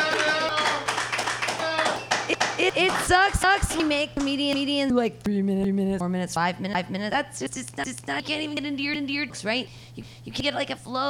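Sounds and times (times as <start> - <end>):
voices cheering: 0.0 - 3.1
crowd clapping: 0.0 - 4.4
speech: 2.8 - 11.0.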